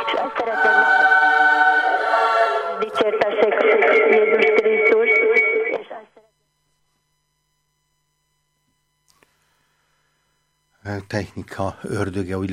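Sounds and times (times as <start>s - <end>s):
radio music playing in caller's background: 0.0s - 6.3s
speech: 11.1s - 12.5s.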